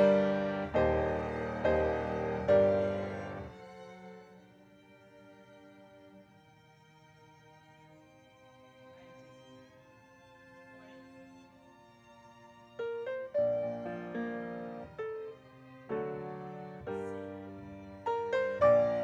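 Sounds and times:
piano: 0.0 - 6.0, 10.8 - 19.0.

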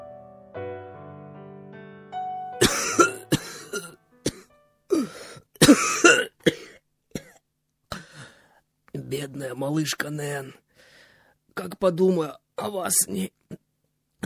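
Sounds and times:
heavy coughing from smoke: 2.6 - 8.2
speech: 9.2 - 10.6, 11.6 - 13.4.

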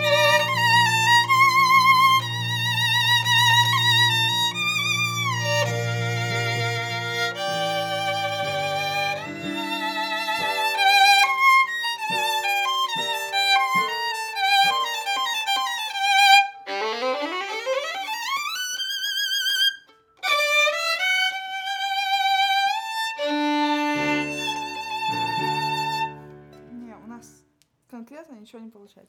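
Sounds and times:
viola playing in C minor: 0.0 - 27.4.

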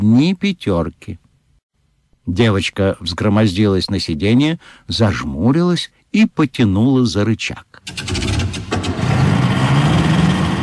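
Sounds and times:
speech: 0.0 - 1.2, 2.3 - 8.2
snowmobile engine starting and roaring: 7.9 - 10.6.

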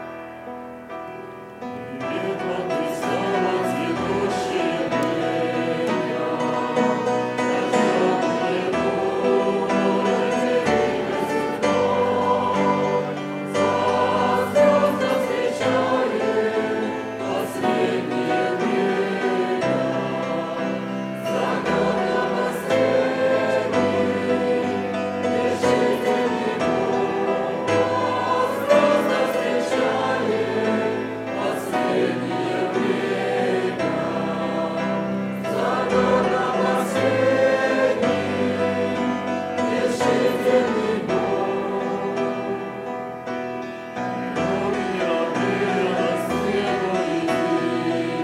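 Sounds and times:
group singing: 1.8 - 43.1, 44.2 - 48.2.

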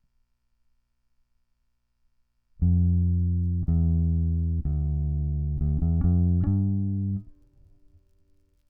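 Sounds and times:
bass: 2.6 - 8.6.

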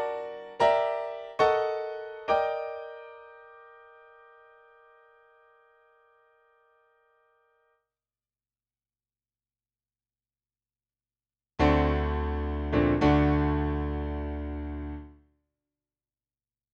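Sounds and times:
piano: 0.0 - 7.7, 11.6 - 15.3.

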